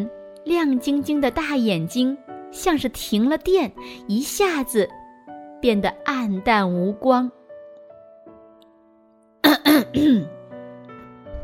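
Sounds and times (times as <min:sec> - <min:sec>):
speech: 0:00.0 - 0:05.0, 0:05.6 - 0:07.4, 0:09.8 - 0:10.4
throat clearing: 0:09.4 - 0:10.4.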